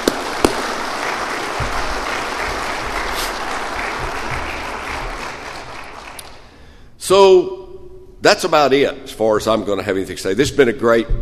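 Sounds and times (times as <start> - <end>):
crowd applauding: 0.0 - 6.6
speech: 7.1 - 7.6, 8.2 - 11.1.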